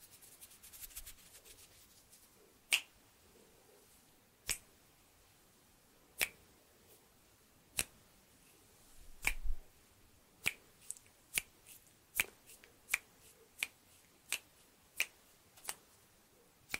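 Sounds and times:
sharp finger snaps: 2.7s - 2.9s, 4.4s - 4.7s, 6.2s - 6.4s, 7.8s - 8.0s, 9.2s - 9.6s, 10.4s - 11.5s, 12.2s - 15.9s.

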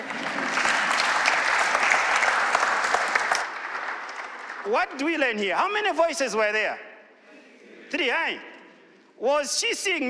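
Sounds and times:
audience applauding: 0.0s - 5.0s
speech: 4.7s - 6.9s, 7.9s - 8.5s, 9.2s - 10.0s.

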